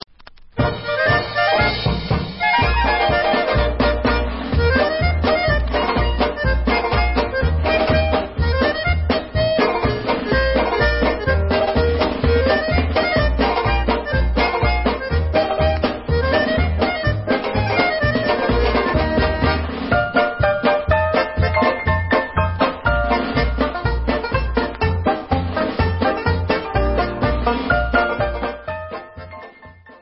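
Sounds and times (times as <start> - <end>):
happy polka music: 0.6 - 29.9.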